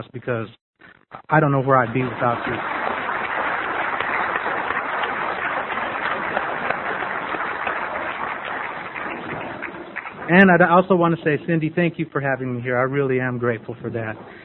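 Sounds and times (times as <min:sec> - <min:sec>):
speech: 0:00.0 - 0:02.8, 0:10.3 - 0:14.4
crowd applause: 0:01.2 - 0:14.4.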